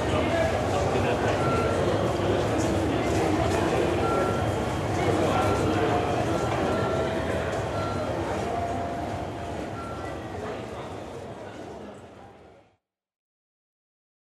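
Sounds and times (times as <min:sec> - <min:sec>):
city ambience: 0:00.0 - 0:12.5
train ticket gate: 0:00.1 - 0:10.9.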